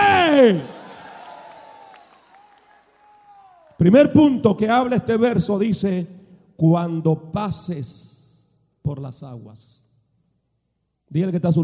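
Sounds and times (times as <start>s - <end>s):
audience applauding: 0.0s - 3.8s
speech: 0.4s - 0.7s, 3.8s - 8.2s, 8.8s - 9.8s, 11.1s - 11.6s.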